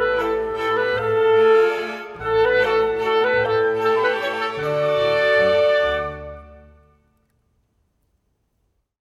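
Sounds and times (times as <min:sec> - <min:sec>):
clarinet playing: 0:00.0 - 0:07.2.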